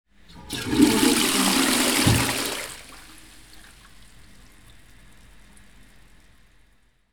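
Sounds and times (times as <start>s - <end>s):
toilet flushing: 0.2s - 6.0s.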